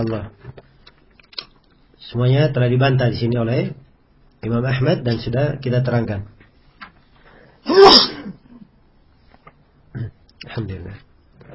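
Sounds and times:
speech: 0:00.0 - 0:00.6, 0:02.0 - 0:03.8, 0:04.4 - 0:06.4, 0:10.6 - 0:11.1
loud sharp sneeze: 0:07.6 - 0:08.6.

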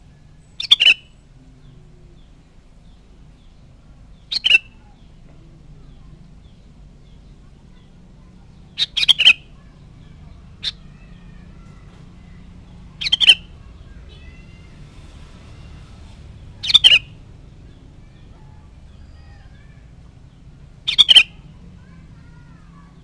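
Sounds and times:
sooty-headed bulbul chattering: 0:00.0 - 0:14.8, 0:16.4 - 0:23.0.

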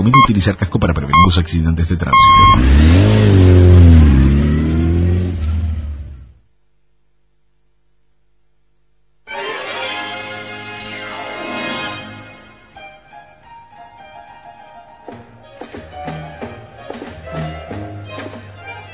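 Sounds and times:
speech: 0:00.0 - 0:04.2
motorcycle engine starting and revving: 0:02.2 - 0:06.4.

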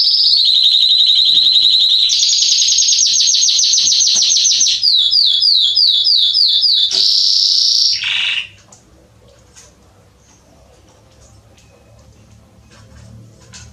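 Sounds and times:
Belgian canary singing trills: 0:00.0 - 0:08.6.

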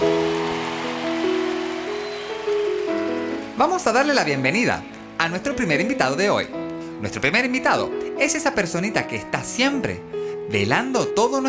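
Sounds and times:
crowd clapping: 0:00.0 - 0:05.7
speech: 0:03.6 - 0:11.4.

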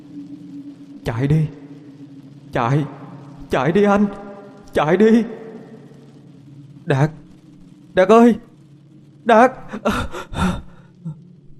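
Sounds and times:
speech: 0:01.0 - 0:01.6, 0:02.5 - 0:05.4, 0:06.9 - 0:07.2, 0:08.0 - 0:08.5, 0:09.2 - 0:10.7
heavy panting of a sweating person waking suddenly from a dream: 0:09.7 - 0:10.9.

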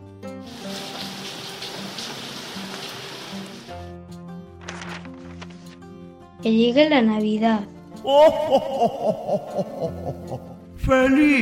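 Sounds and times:
rain falling: 0:00.4 - 0:03.7
speech: 0:06.4 - 0:11.4
laughter: 0:08.1 - 0:10.6.

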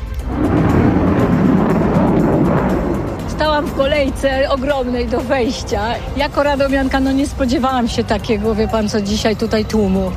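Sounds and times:
jet aircraft flying over at air show: 0:00.0 - 0:07.0
speech: 0:03.7 - 0:10.1.

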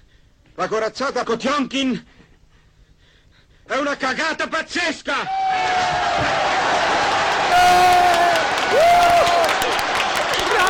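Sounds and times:
speech: 0:00.6 - 0:02.2, 0:03.7 - 0:06.5
audience applauding: 0:05.7 - 0:10.6.

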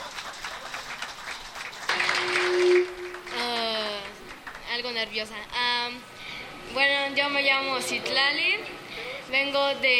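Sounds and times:
audience applause: 0:00.0 - 0:04.7
speech: 0:05.0 - 0:06.1, 0:06.7 - 0:09.9.

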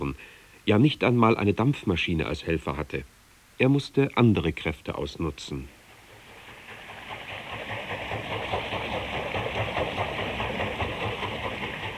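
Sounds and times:
speech: 0:00.0 - 0:05.8
flowing brook water: 0:04.4 - 0:11.9.

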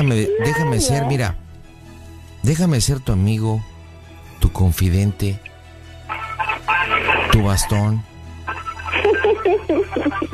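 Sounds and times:
thin tinny voice through a cellphone speaker: 0:00.0 - 0:01.1, 0:06.1 - 0:07.8
speech: 0:00.0 - 0:01.4, 0:02.4 - 0:03.7, 0:04.5 - 0:05.5, 0:07.4 - 0:08.1, 0:09.5 - 0:10.3
laughter: 0:06.1 - 0:07.8, 0:08.5 - 0:10.3.

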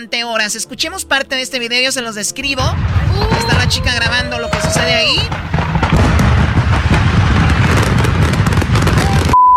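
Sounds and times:
speech: 0:00.0 - 0:05.8
fireworks exploding near a burning house: 0:02.4 - 0:09.4.

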